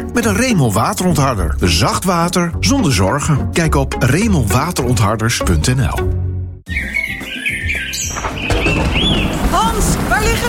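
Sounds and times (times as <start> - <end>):
speech: 0.2 - 6.2
short rising bird chirps: 6.7 - 10.4
low rumble of thunder: 8.0 - 10.4
steady hissing rain: 8.1 - 10.4.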